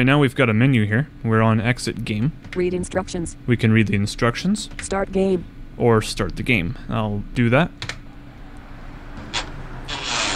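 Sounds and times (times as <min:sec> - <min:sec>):
speech: 0:00.0 - 0:08.0
video game bus engine rumble: 0:08.1 - 0:10.3
video game bus air brakes hissing: 0:09.9 - 0:10.3.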